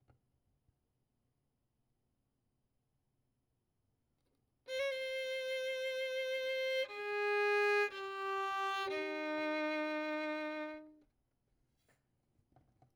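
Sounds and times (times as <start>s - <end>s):
violin: 4.7s - 11.0s.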